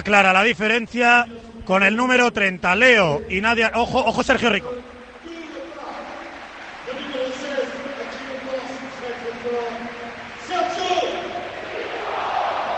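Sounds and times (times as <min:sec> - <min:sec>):
speech: 0:00.0 - 0:05.0
stadium crowd applause and cheering: 0:04.4 - 0:12.7
stadium crowd chanting in unison: 0:11.1 - 0:12.7.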